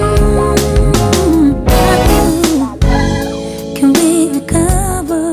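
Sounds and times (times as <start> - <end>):
stretched side kick drums: 0.2 - 3.5, 4.7 - 5.1.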